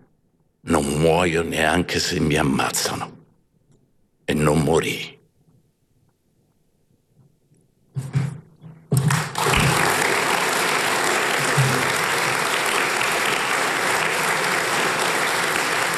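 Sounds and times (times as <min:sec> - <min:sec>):
speech: 0:00.8 - 0:03.2, 0:04.3 - 0:05.2
moved audience applause: 0:09.0 - 0:15.9.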